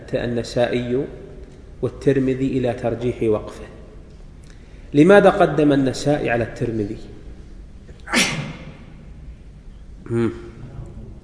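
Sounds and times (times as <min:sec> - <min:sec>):
speech: 0:00.1 - 0:01.2, 0:01.8 - 0:03.8, 0:04.9 - 0:07.2, 0:10.1 - 0:10.5
sneeze: 0:08.0 - 0:08.9.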